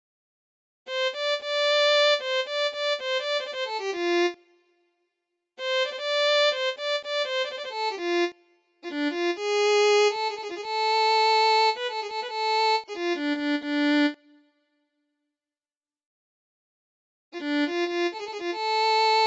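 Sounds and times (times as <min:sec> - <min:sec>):
violin: 0:00.9 - 0:04.4, 0:05.6 - 0:14.4, 0:17.4 - 0:19.2.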